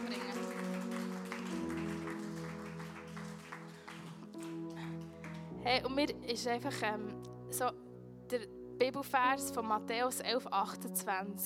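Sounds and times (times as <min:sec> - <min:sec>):
audience applause: 0:00.0 - 0:05.5
speech: 0:05.6 - 0:11.4.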